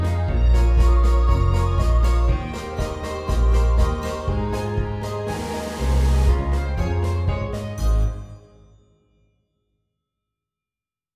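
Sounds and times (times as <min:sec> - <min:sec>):
orchestra playing: 0:00.0 - 0:08.6.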